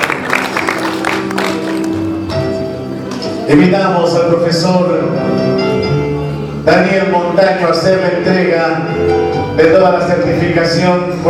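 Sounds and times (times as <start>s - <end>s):
crowd applauding at a school graduation ceremony: 0.0s - 3.3s
speech: 3.5s - 5.6s, 6.6s - 11.2s.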